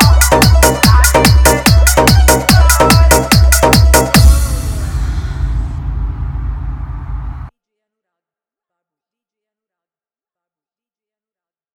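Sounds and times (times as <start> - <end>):
full bass club dance mix: 0.0 - 7.5.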